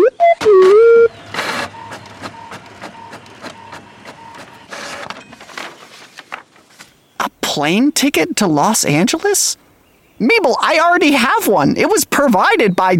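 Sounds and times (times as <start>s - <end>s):
printer printing a page: 0.4s - 6.4s
speech: 7.6s - 9.6s, 10.2s - 12.9s.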